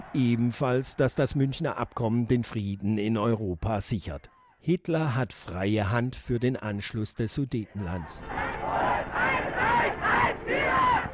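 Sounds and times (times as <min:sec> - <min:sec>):
large crowd cheering and shouting as troops enter town: 0:00.0 - 0:02.2, 0:08.2 - 0:11.1
speech: 0:00.1 - 0:08.4.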